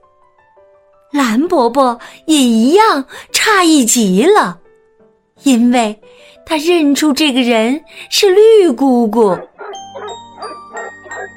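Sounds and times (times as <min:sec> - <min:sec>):
speech: 0:01.3 - 0:04.6, 0:05.4 - 0:09.5
dog barking frantically: 0:09.3 - 0:11.3.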